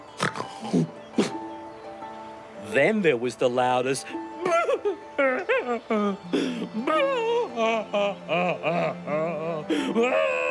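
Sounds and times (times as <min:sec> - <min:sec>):
snorts: 0:00.2 - 0:01.4
speech: 0:00.6 - 0:01.3, 0:02.8 - 0:04.3, 0:05.8 - 0:07.0
laughter: 0:04.1 - 0:10.4.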